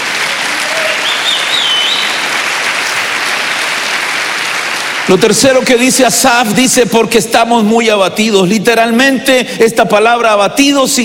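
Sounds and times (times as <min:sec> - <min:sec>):
audience clapping: 0:00.0 - 0:06.6
speech: 0:05.1 - 0:11.0.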